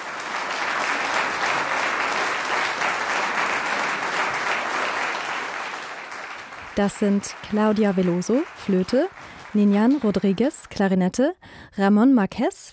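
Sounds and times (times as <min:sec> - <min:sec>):
audience applause: 0:00.0 - 0:10.7
speech: 0:06.8 - 0:12.7.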